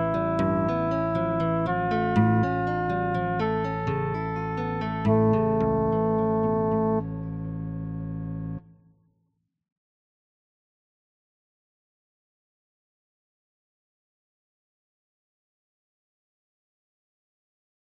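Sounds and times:
thirteen limit harmonic fragment: 0:00.0 - 0:08.6.

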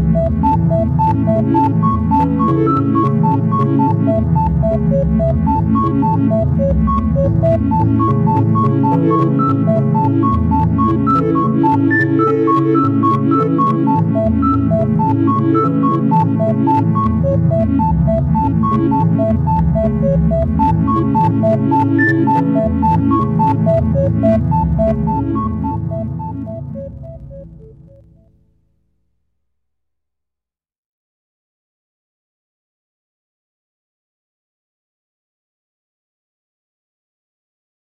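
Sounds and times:
syncopated rhythm: 0:00.1 - 0:28.1.

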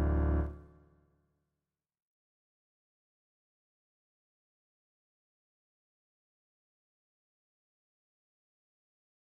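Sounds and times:
cello playing pentatonic melody: 0:00.0 - 0:00.6.

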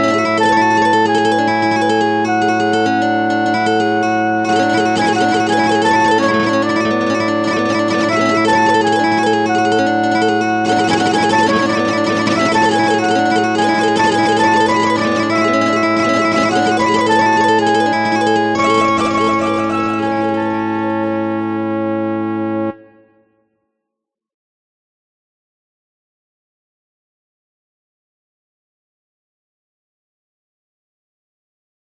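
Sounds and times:
flute harmonies: 0:00.0 - 0:23.1
guitar: 0:00.0 - 0:23.1
oboe harmonies: 0:00.0 - 0:23.2.

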